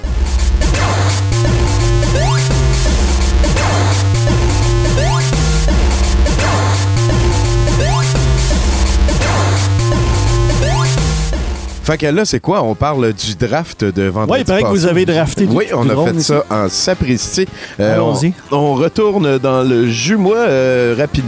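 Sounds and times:
dense loud instrumental beat with heavy bass, drums and synths: 0.0s - 12.0s
speech: 11.9s - 21.2s.

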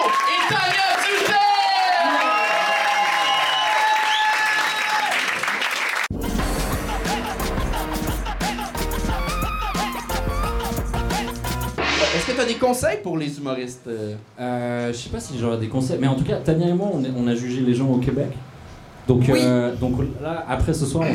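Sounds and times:
audience applause and cheering: 0.0s - 11.4s
bright music: 6.1s - 12.8s
speech: 12.7s - 18.4s, 19.1s - 21.1s.

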